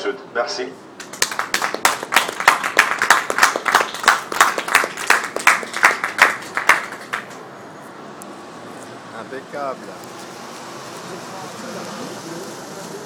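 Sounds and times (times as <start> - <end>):
speech: 0.1 - 0.9, 9.5 - 10.4, 11.1 - 12.6
audience applause: 1.0 - 7.4.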